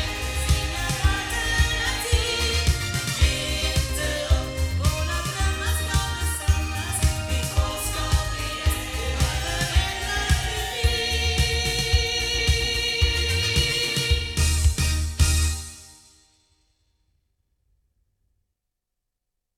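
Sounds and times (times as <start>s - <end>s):
loudspeakers recorded with Rode NT3 on battery: 0.0s - 15.6s.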